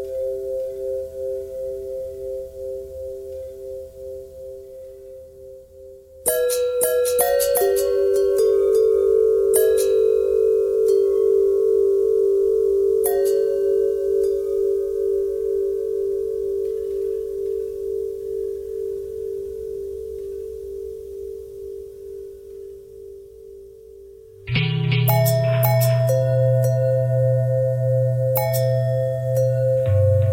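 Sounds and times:
long bell tones: 0:00.0 - 0:30.3.

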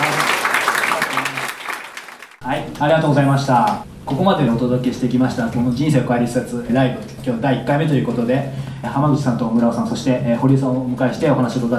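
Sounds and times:
audience applause: 0:00.0 - 0:02.4
speech: 0:02.8 - 0:11.7.

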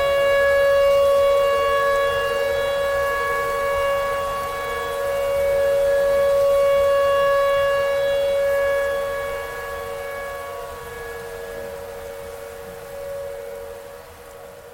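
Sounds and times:
clarinet playing a simple tornado siren imitation: 0:00.0 - 0:14.6.

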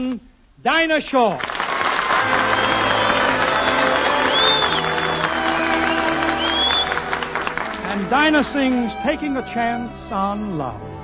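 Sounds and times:
speech: 0:00.0 - 0:01.5, 0:08.1 - 0:11.0
large audience applause: 0:01.4 - 0:08.7
audience cheers and whistles: 0:02.1 - 0:07.2.

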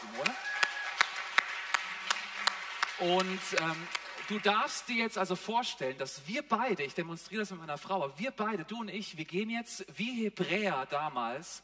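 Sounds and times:
audience applause: 0:00.0 - 0:04.8
speech: 0:03.0 - 0:11.6.

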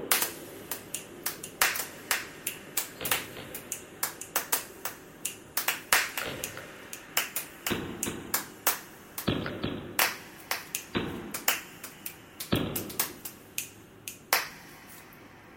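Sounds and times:
clapping: 0:00.1 - 0:05.0, 0:05.6 - 0:06.6, 0:07.2 - 0:09.3, 0:10.0 - 0:13.7, 0:14.3 - 0:14.7.

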